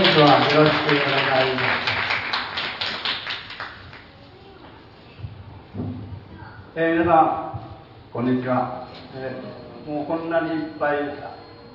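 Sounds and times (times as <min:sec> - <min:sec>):
audience applause: 0:00.0 - 0:04.1
speech: 0:00.2 - 0:01.9, 0:06.8 - 0:11.4.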